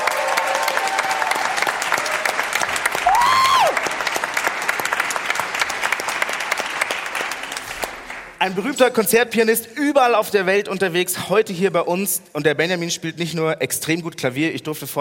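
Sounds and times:
audience applause: 0:00.0 - 0:08.4
speech: 0:08.5 - 0:14.9.

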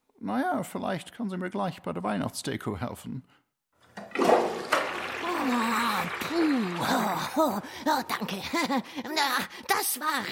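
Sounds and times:
speech: 0:00.2 - 0:03.4, 0:05.4 - 0:10.3
toilet flushing: 0:03.8 - 0:08.7
laughter: 0:04.6 - 0:09.2.

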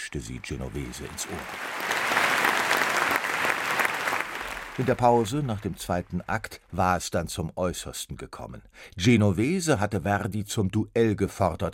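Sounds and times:
speech: 0:00.1 - 0:01.9, 0:04.8 - 0:11.7
crowd applause: 0:00.2 - 0:06.2.

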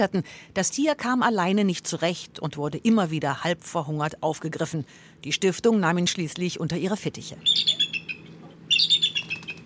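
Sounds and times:
speech: 0:00.0 - 0:07.8
bald eagle calling: 0:07.4 - 0:09.6.

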